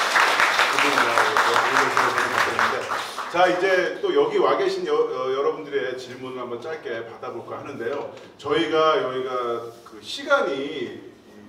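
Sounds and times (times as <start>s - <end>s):
audience applause: 0.0s - 3.6s
speech: 3.3s - 11.1s.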